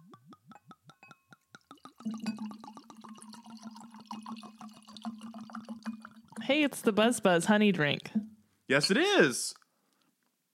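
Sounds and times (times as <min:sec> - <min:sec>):
wine poured from a bottle: 0:00.0 - 0:06.4
speech: 0:02.0 - 0:02.5, 0:06.5 - 0:09.6.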